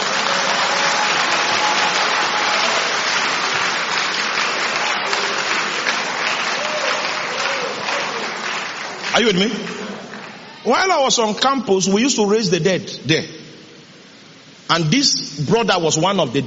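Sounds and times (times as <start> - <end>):
audience clapping: 0.0 - 11.2
speech: 9.2 - 9.8, 10.6 - 13.4, 14.7 - 16.4.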